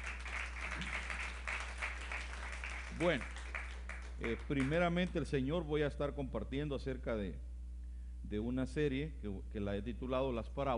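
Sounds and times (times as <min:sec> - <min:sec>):
audience applause: 0:00.0 - 0:04.8
speech: 0:03.0 - 0:03.4, 0:04.2 - 0:07.5, 0:08.2 - 0:10.7.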